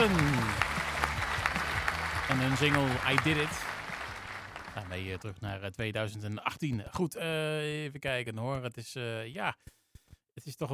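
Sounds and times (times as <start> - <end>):
applause: 0.0 - 5.4
speech: 2.4 - 3.7, 4.8 - 9.8, 10.4 - 10.7.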